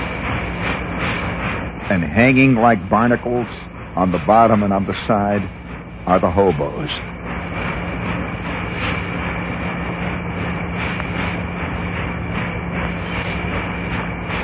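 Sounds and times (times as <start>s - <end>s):
freight train rolling past: 0.0s - 14.4s
speech: 1.9s - 7.1s.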